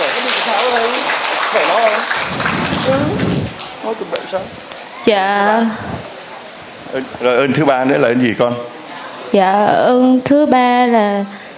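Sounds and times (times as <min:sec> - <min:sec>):
audience applause: 0:00.0 - 0:03.7
speech: 0:03.9 - 0:06.1, 0:06.9 - 0:11.4.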